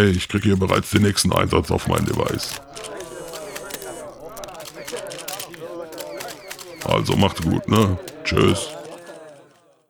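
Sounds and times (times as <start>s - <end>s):
speech: 0.0s - 3.0s, 6.8s - 8.8s
laughter: 0.0s - 9.8s
camera shutter clicks as a group takes photos: 1.9s - 9.2s.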